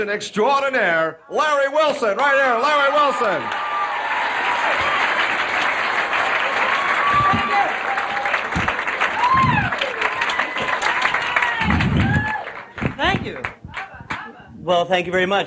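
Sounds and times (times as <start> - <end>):
speech: 0.0 - 3.6, 14.7 - 15.4
audience applause: 3.2 - 14.4.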